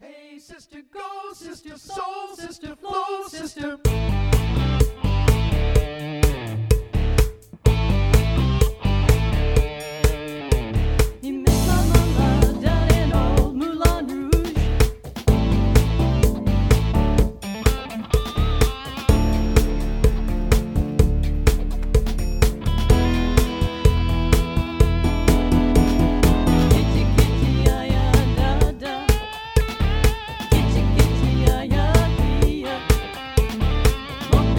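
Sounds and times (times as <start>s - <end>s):
instrumental music with harmony: 4.4s - 34.5s.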